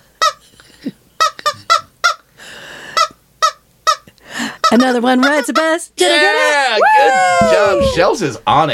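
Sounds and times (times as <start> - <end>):
squeezed squeaky rubber chicken toy: 0.2 - 0.4, 1.2 - 2.3, 3.0 - 5.8
speech: 4.7 - 8.7.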